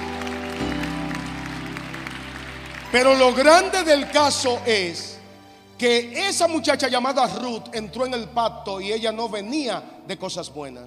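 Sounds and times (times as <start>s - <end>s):
audience applause: 0.0s - 5.0s
speech: 2.9s - 5.1s, 5.8s - 10.8s.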